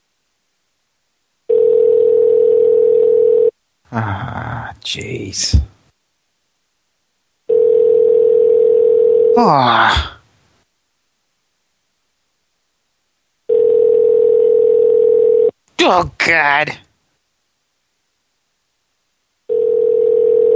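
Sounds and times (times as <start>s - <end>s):
telephone ringback tone: 1.5s - 3.5s, 7.5s - 9.4s, 13.5s - 15.5s, 19.5s - 20.5s
speech: 3.9s - 5.7s, 9.4s - 10.1s, 15.9s - 16.9s.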